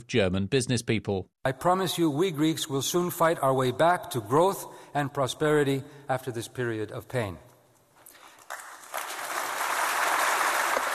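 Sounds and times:
speech: 0:00.0 - 0:07.5
audience applause: 0:08.3 - 0:10.9.

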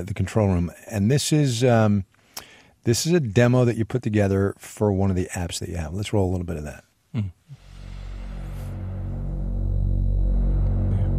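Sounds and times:
speech: 0:00.0 - 0:02.1, 0:02.8 - 0:07.4
Moog synthesizer drone: 0:07.5 - 0:11.1.

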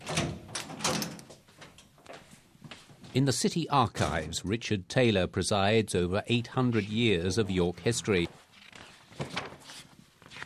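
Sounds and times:
door being unlocked and opened: 0:00.0 - 0:01.8
speech: 0:03.1 - 0:08.4.

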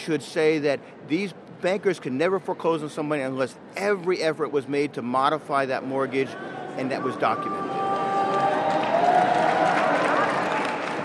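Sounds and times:
speech: 0:00.0 - 0:07.7
murmur of voices: 0:05.6 - 0:08.8
crowd applause in the background: 0:07.1 - 0:11.0.

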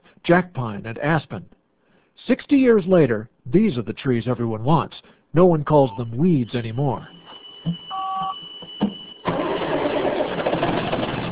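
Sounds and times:
speech: 0:00.3 - 0:01.6, 0:02.3 - 0:07.8
logging machine cockpit beeping: 0:05.7 - 0:10.3
logging machine engine starting: 0:09.2 - 0:11.3.

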